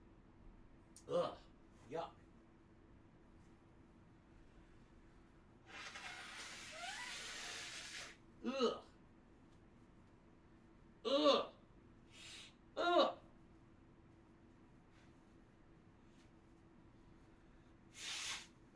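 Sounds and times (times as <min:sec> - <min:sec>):
speech: 0:01.0 - 0:02.2, 0:08.5 - 0:08.8
person blowing nose: 0:05.6 - 0:08.2, 0:12.1 - 0:12.6, 0:17.9 - 0:18.6.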